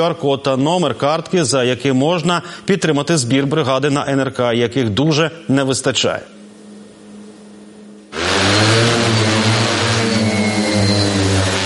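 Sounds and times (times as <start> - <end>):
speech: 0.0 - 6.4
heavy bomber drone motors taking off: 8.1 - 11.6.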